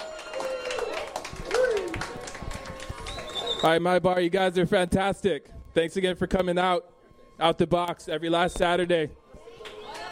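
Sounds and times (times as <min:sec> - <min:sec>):
whoops and cheering voices: 0:00.0 - 0:03.6, 0:09.4 - 0:10.1
audience clapping: 0:00.0 - 0:03.8, 0:09.6 - 0:10.1
speech: 0:03.6 - 0:09.2.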